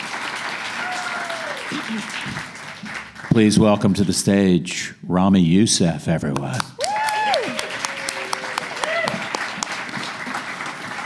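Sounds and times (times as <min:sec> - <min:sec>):
audience applause at a stand-up comedy show: 0:00.0 - 0:03.8, 0:06.5 - 0:11.0
speech: 0:01.8 - 0:06.8.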